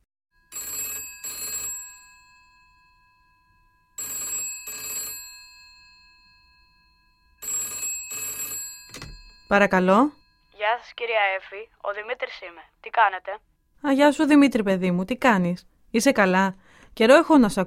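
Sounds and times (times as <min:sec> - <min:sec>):
telephone ringing: 0:00.4 - 0:11.7
speech: 0:09.5 - 0:17.6.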